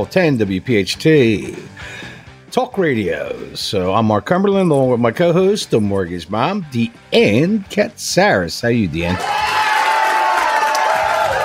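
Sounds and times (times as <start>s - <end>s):
speech: 0.0s - 9.6s
people clapping: 9.2s - 11.4s.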